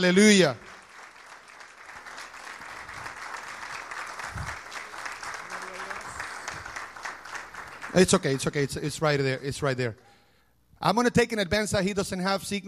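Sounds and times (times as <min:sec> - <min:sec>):
speech: 0:00.0 - 0:00.7, 0:08.0 - 0:10.1, 0:10.8 - 0:12.6
audience applause: 0:00.0 - 0:08.7.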